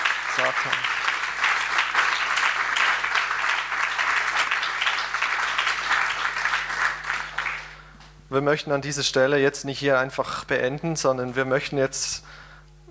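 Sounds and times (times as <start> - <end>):
audience applause: 0.0 - 7.8
speech: 0.4 - 1.0, 8.3 - 12.5.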